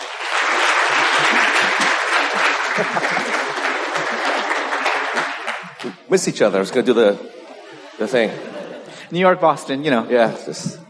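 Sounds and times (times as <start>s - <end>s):
church congregation applause welcoming a visiting pastor: 0.0s - 6.1s
laughter: 0.4s - 6.0s, 6.8s - 10.8s
speech: 2.8s - 3.2s, 6.1s - 7.4s, 8.0s - 10.8s.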